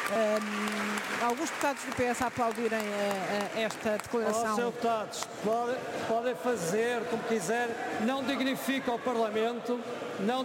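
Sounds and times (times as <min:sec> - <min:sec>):
members of parliament clapping in the parliament chamber: 0:00.0 - 0:05.8
speech: 0:00.1 - 0:10.4.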